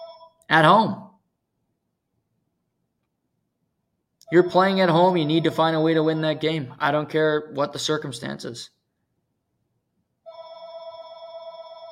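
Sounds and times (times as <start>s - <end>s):
landline telephone ringing at a parents' home in the woods: 0.0s - 0.4s, 4.3s - 5.7s, 10.3s - 11.9s
speech: 0.5s - 1.1s, 4.3s - 8.8s.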